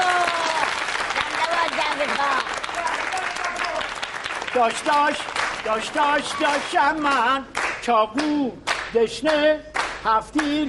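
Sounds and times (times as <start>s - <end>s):
hand clapping at a Tehran-style celebration: 0.0s - 10.6s
speech: 4.6s - 10.6s
voices or singing: 4.6s - 10.6s.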